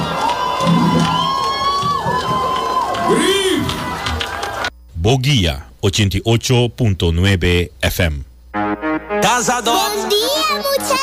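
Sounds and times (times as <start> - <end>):
audience cheering in euphoria: 0.0 - 4.7
speech: 5.0 - 8.3, 9.2 - 11.0.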